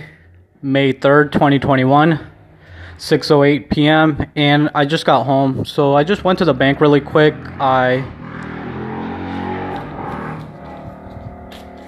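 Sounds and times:
speech: 0.6 - 2.3, 3.0 - 8.2
ATV four-wheeler engine driving by on a street: 5.6 - 11.8.

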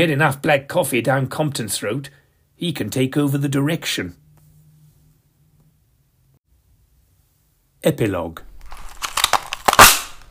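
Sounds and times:
speech: 0.0 - 4.2, 7.8 - 8.5
papery crinkles and crackles of a Christmas cracker: 8.4 - 10.2
Christmas cracker being pulled and snapping: 8.6 - 10.2.

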